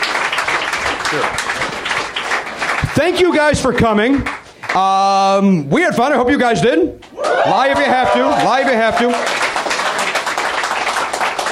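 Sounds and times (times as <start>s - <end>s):
crowd applauding: 0.0s - 4.9s, 7.2s - 11.5s
speech: 1.1s - 1.6s, 3.0s - 9.4s.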